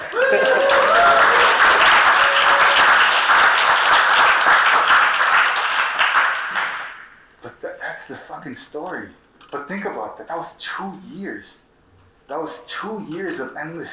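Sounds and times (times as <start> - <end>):
audience cheering and whooping: 0.0 - 4.0
audience applause: 0.0 - 7.1
speech: 8.5 - 11.7, 12.3 - 13.9.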